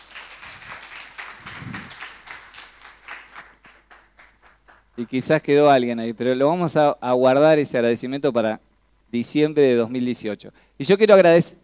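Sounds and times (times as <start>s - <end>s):
audience applause: 0.0s - 5.0s
speech: 5.0s - 11.6s.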